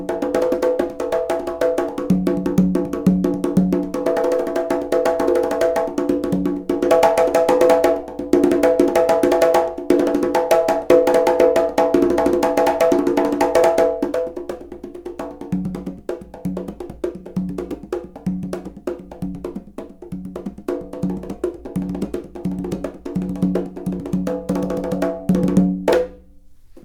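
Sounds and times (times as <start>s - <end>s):
white conga set: 0.0s - 26.8s.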